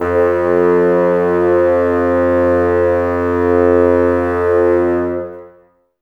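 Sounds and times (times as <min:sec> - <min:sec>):
bassoons playing F2: 0:00.0 - 0:05.6.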